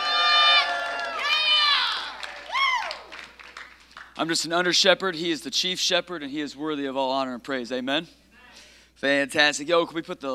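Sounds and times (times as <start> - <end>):
high whoops and loud shouts: 0.0 - 3.1
audience cheering: 0.0 - 3.4
speech: 4.2 - 8.2, 9.0 - 10.3.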